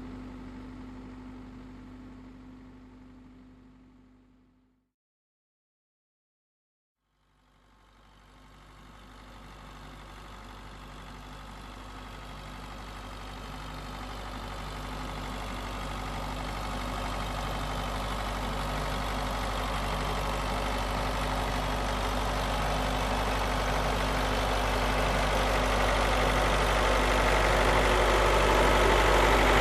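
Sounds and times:
tractor engine starting: 0:10.3 - 0:29.6.

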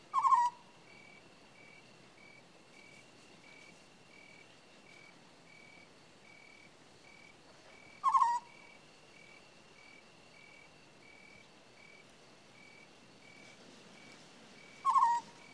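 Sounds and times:
owl screeching: 0:00.1 - 0:00.6, 0:08.0 - 0:08.6, 0:14.8 - 0:15.4.

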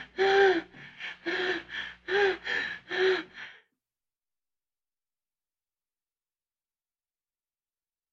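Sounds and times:
woman breathing heavily from pleasure: 0:00.0 - 0:03.7.

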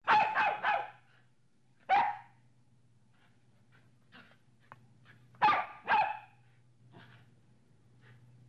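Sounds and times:
medium-sized dog barking: 0:00.0 - 0:01.0, 0:01.9 - 0:02.4, 0:05.4 - 0:06.4.

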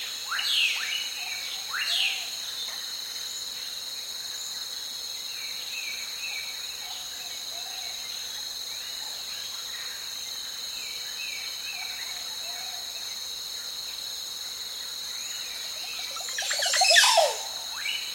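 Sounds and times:
calm cricket chirping: 0:00.0 - 0:18.1
varied clear ringing birdsong on a lake: 0:15.9 - 0:18.1.

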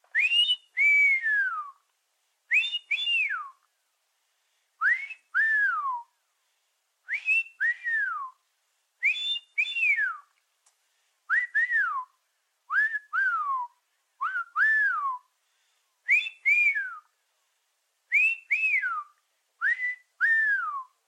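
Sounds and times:
wolf whistle: 0:00.1 - 0:01.8, 0:02.5 - 0:03.6, 0:04.8 - 0:06.1, 0:07.1 - 0:08.4, 0:09.0 - 0:10.3, 0:12.7 - 0:15.3, 0:16.1 - 0:17.1, 0:18.1 - 0:21.0.

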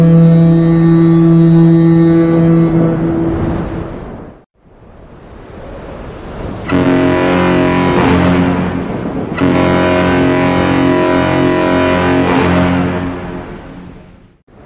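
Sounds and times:
large warship cruiser whistle: 0:00.0 - 0:03.9, 0:06.7 - 0:08.8, 0:09.4 - 0:14.1.

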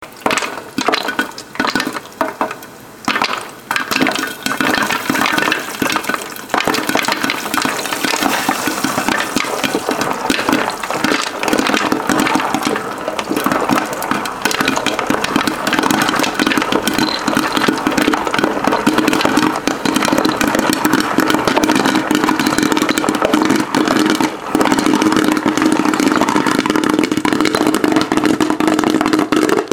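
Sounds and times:
popcorn popping: 0:00.0 - 0:29.7.

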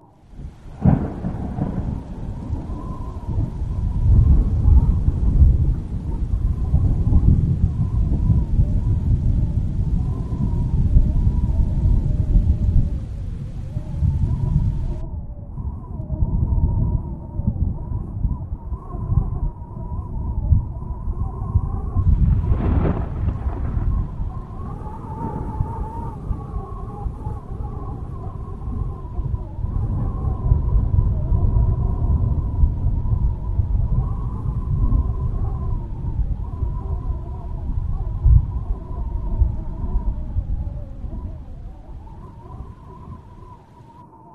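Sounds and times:
long rolls of thunder: 0:00.0 - 0:15.3, 0:16.2 - 0:44.3
strengthening wind: 0:00.0 - 0:44.3.

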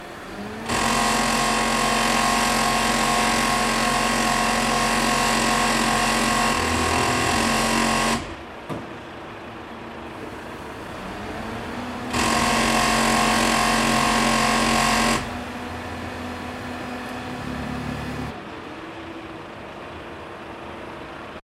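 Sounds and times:
cement mixer: 0:00.0 - 0:08.5, 0:10.2 - 0:18.4.

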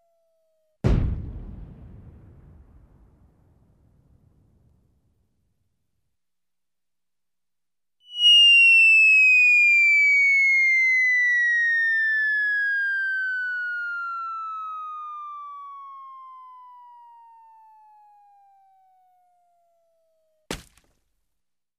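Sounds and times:
comic whistle of a fall from a height: 0:08.0 - 0:20.1
comic impact on the ground: 0:20.5 - 0:21.1.

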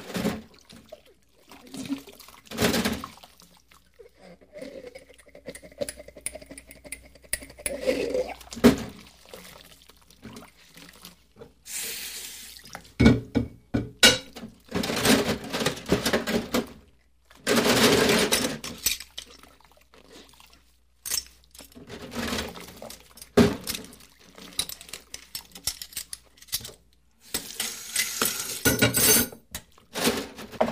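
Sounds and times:
dishes washed in a kitchen sink: 0:00.0 - 0:30.7
plates clinking in a kitchen: 0:13.0 - 0:14.4, 0:28.4 - 0:29.4.

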